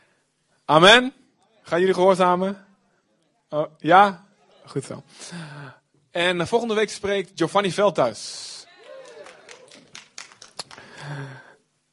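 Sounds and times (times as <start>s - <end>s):
speech: 0.7s - 2.6s, 3.5s - 8.6s, 11.0s - 11.4s
audience applause: 8.7s - 11.4s.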